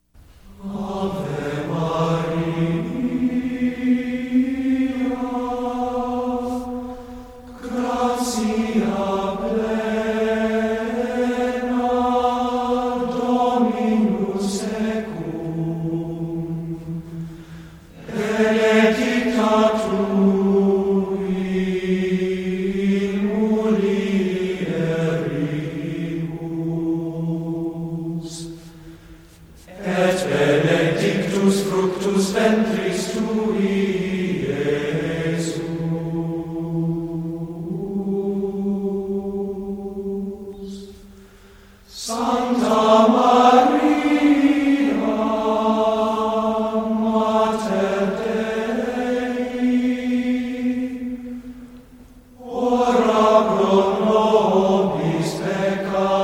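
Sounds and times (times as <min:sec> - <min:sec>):
Gregorian chant: 0:00.5 - 0:56.2.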